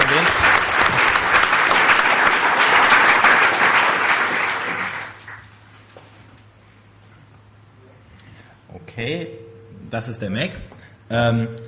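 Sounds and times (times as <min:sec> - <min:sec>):
audience applause: 0:00.0 - 0:05.5
speech: 0:09.9 - 0:11.6.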